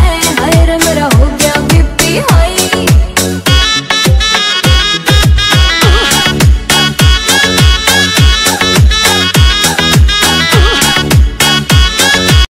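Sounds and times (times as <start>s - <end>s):
Haryanvi ringtone music: 0.1s - 12.4s.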